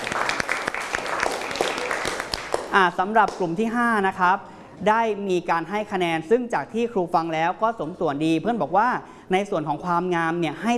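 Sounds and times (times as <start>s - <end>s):
applause: 0.0s - 3.4s
speech: 2.8s - 10.7s.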